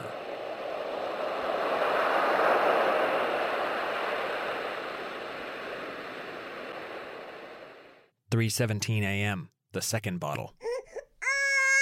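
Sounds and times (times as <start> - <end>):
soothing baby sleep sounds of ocean waves: 0.0 - 8.1
speech: 8.4 - 10.6.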